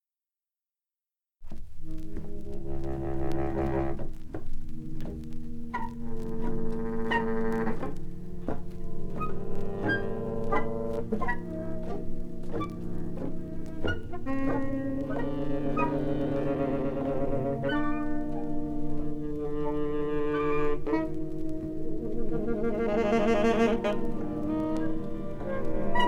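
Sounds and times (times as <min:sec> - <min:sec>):
saxophone orchestra: 0:01.8 - 0:26.0.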